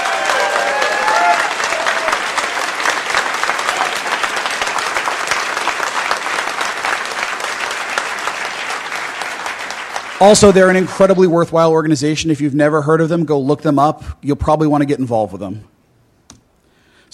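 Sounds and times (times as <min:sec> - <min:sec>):
audience applause: 0:00.0 - 0:11.3
speech: 0:10.2 - 0:15.7.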